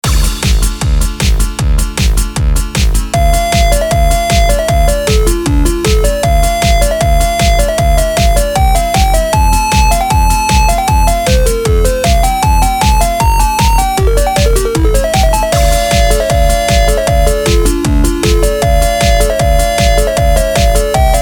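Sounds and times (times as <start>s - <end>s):
music: 0.0s - 21.2s.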